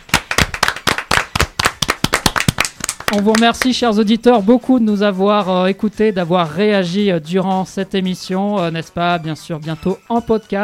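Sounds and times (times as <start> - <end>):
small group clapping in studio: 0.0 - 3.9
speech: 3.1 - 10.6.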